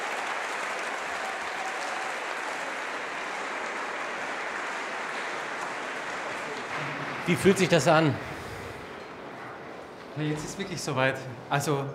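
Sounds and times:
audience applause, standing ovation: 0:00.0 - 0:09.0
speech: 0:07.2 - 0:08.3, 0:10.2 - 0:11.9.

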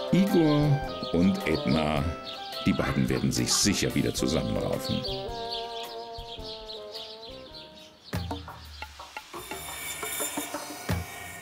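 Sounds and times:
high chirping and tonal sounds: 0:00.0 - 0:10.7
speech: 0:00.1 - 0:05.6
sawing through meat rations: 0:09.4 - 0:11.4.

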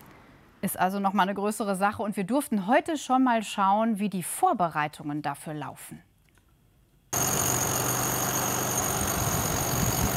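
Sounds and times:
speech: 0:00.6 - 0:06.1
drilling rig boring blast holes: 0:07.2 - 0:10.1.

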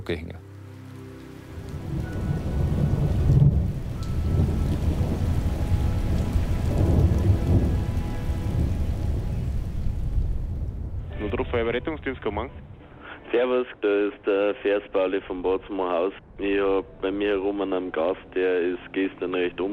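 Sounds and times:
speech: 0:00.0 - 0:00.5, 0:11.5 - 0:12.7, 0:13.3 - 0:19.7
steady rain pattering: 0:00.0 - 0:12.8
low thunder rumbling: 0:01.6 - 0:12.9.

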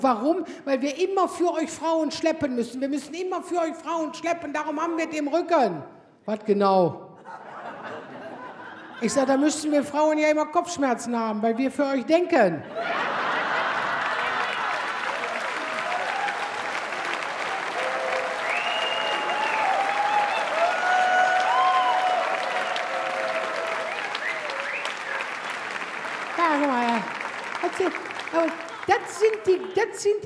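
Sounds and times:
speech: 0:00.0 - 0:07.4, 0:09.0 - 0:13.1, 0:29.9 - 0:30.2
laughter: 0:07.2 - 0:09.7, 0:12.6 - 0:16.0, 0:27.6 - 0:29.8
live audience applause: 0:13.0 - 0:29.8
scattered voices and brief whoops: 0:15.2 - 0:25.4.

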